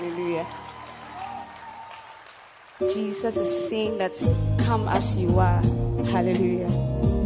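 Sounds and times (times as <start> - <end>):
audience clapping: 0.0 - 3.4
speech: 0.4 - 0.7, 2.8 - 7.1.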